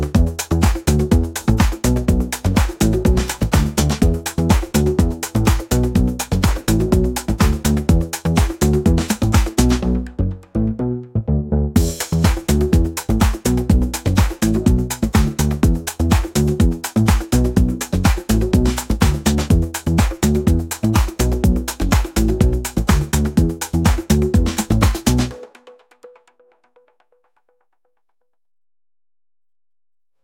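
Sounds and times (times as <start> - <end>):
funky bass line: 0.0 - 25.3.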